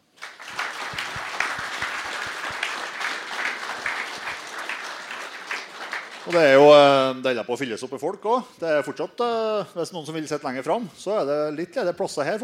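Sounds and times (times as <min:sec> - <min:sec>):
audience applause: 0:00.0 - 0:06.8
speech: 0:06.3 - 0:12.4.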